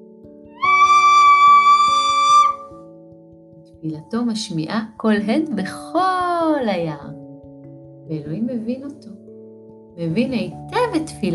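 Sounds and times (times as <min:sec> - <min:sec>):
two-finger whistle: 0:00.6 - 0:02.7
speech: 0:03.8 - 0:07.2, 0:08.1 - 0:09.2, 0:10.0 - 0:11.3.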